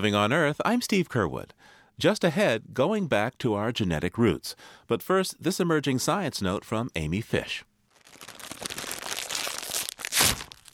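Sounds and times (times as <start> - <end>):
speech: 0.0 - 8.4
crunching salt and vinegar potato chips: 7.9 - 10.7.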